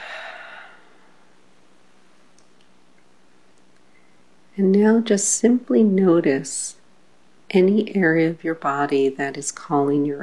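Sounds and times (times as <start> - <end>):
deep release breath exhaled through the mouth during guided breathing: 0.0 - 1.2
speech: 4.6 - 6.8, 7.5 - 10.2.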